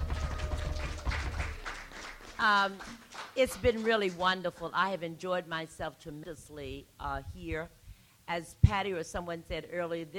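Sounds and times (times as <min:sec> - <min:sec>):
audience applause: 0:00.0 - 0:03.4
speech: 0:02.4 - 0:10.1.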